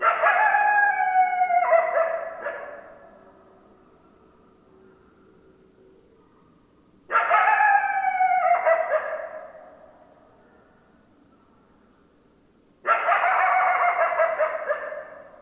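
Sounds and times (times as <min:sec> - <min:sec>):
several coyotes howling: 0:00.0 - 0:02.9, 0:07.2 - 0:09.8, 0:12.9 - 0:15.3.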